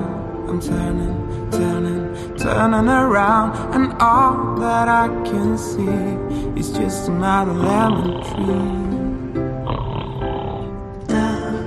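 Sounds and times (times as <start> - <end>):
speech: 0.5 - 9.0
person snoring: 7.6 - 10.8.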